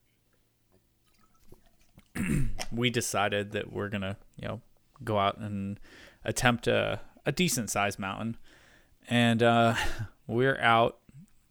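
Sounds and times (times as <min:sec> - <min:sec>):
drinking water: 0:01.0 - 0:02.7
speech: 0:02.7 - 0:11.0.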